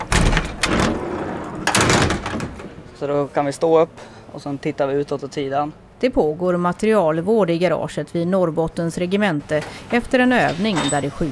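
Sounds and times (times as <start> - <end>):
hatches opening inside a Stridsfordon 90 infantry fighting vehicle: 0.0 - 3.0, 10.4 - 11.3
speech: 3.0 - 11.3.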